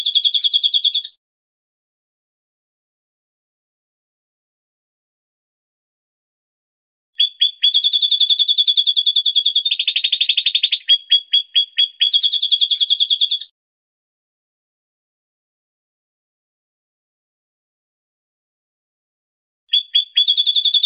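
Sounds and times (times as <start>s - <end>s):
songbird rattling high trill: 0.0s - 1.2s, 7.2s - 13.5s, 19.7s - 20.8s.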